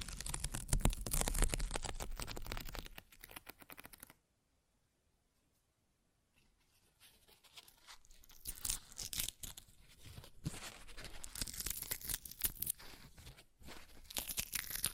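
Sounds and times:
paper ripping and tearing: 0.0 - 4.1, 7.3 - 14.9.

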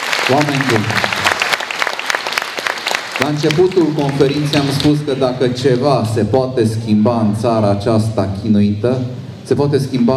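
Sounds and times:
audience applause: 0.0 - 5.5
speech: 0.3 - 1.2, 3.2 - 10.1.

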